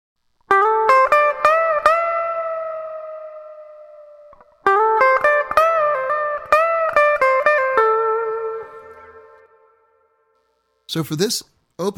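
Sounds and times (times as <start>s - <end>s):
distorted electric guitar on bridge pickup: 0.5s - 9.7s
speech: 10.9s - 11.9s.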